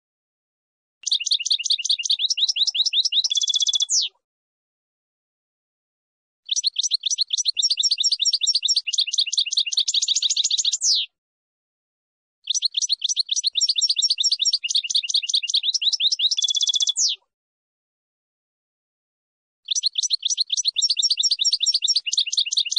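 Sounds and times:
finch song: 0:01.0 - 0:04.2, 0:06.5 - 0:11.2, 0:12.4 - 0:17.3, 0:19.6 - 0:22.7.

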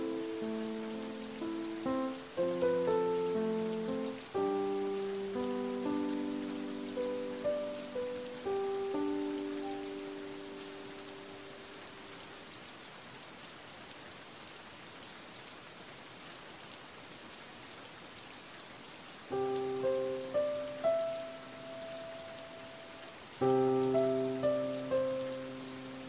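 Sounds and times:
music: 0:00.0 - 0:11.1, 0:19.3 - 0:26.0
rain: 0:00.0 - 0:26.0.

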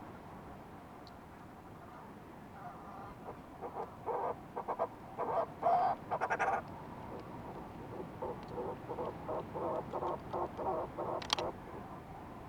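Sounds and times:
fulmar prion calls: 0:02.6 - 0:11.9.

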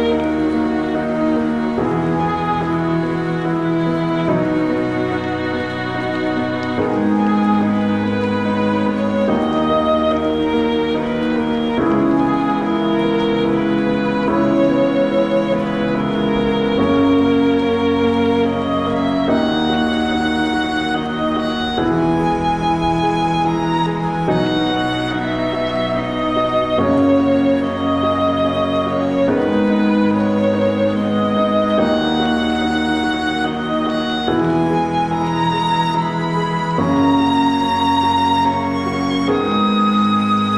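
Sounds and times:
rain: 0:00.0 - 0:40.5
violin: 0:00.0 - 0:40.5.

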